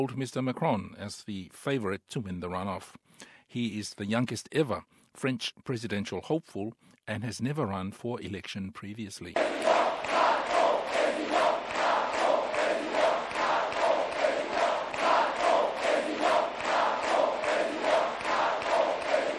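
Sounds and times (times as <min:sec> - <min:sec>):
speech: 0:00.0 - 0:10.0
large crowd of supporters cheering in a pulsing rhythm: 0:09.4 - 0:19.3.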